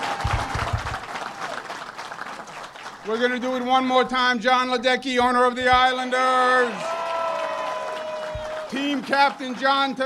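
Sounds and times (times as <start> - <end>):
crowd applause: 0.0 - 4.0, 6.0 - 10.0
low thumps: 0.2 - 1.0, 5.1 - 6.0
speech: 3.1 - 6.9, 8.8 - 10.0.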